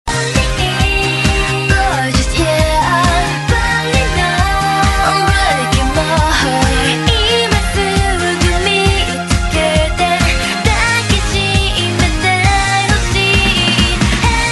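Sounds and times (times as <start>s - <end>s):
chorus singing: 0.1s - 14.5s.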